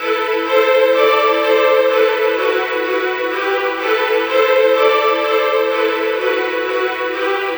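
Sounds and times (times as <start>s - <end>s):
strings: 0.0s - 7.5s.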